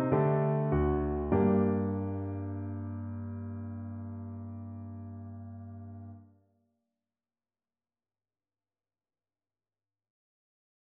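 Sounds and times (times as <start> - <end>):
sonata for euphonium: 0.0 - 6.2.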